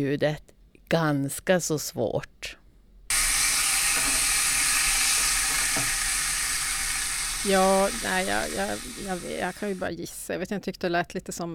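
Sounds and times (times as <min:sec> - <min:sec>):
speech: 0:00.0 - 0:02.6, 0:07.4 - 0:11.5
eggs frying in a pan: 0:03.1 - 0:09.9.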